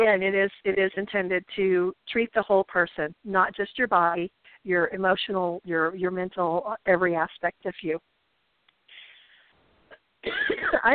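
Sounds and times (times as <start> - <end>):
speech: 0.0 - 8.1, 10.2 - 10.9
person coughing: 10.2 - 10.9.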